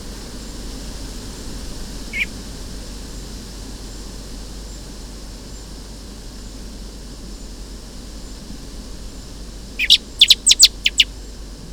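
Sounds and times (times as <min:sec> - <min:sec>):
Eurasian blackbird chinking calls: 0:02.0 - 0:02.3, 0:09.8 - 0:11.3.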